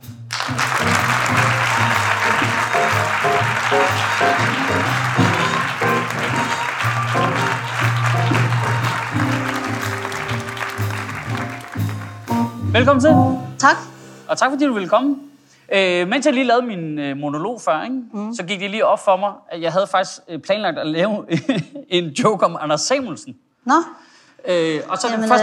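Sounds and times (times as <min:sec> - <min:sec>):
band music: 0:00.0 - 0:15.5
ticketed audience applause welcoming Denmark's culture minister: 0:00.3 - 0:12.6
laughter: 0:00.4 - 0:11.7
speech: 0:03.7 - 0:05.2, 0:12.8 - 0:25.4.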